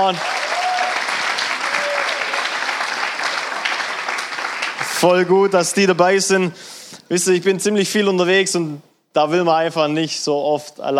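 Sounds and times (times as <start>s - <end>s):
speech: 0.0s - 0.4s, 5.0s - 10.9s
audience applause: 0.0s - 5.3s.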